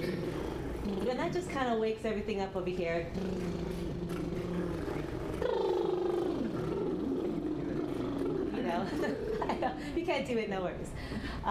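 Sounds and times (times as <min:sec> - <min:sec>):
speech: 0:01.1 - 0:03.7, 0:08.8 - 0:11.4
lip trills vocal warm-up: 0:03.1 - 0:09.5.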